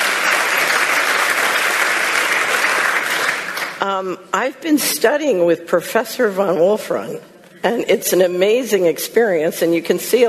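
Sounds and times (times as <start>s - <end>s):
audience applause: 0.0s - 3.8s
speech: 3.8s - 10.2s.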